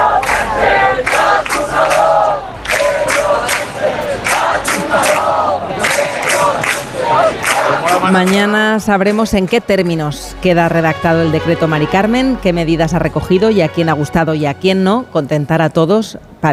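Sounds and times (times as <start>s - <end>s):
large crowd booing outdoors: 0.0s - 9.6s
speech: 8.1s - 16.5s.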